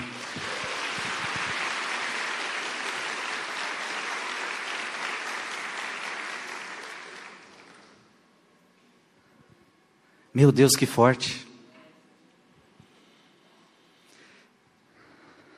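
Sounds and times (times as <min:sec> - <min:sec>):
applause from an audience: 0:00.0 - 0:08.1
speech: 0:10.4 - 0:11.5.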